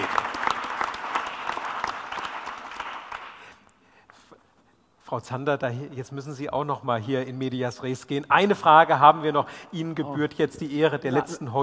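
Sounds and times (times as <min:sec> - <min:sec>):
audience applause: 0:00.0 - 0:03.5
speech: 0:05.1 - 0:11.6.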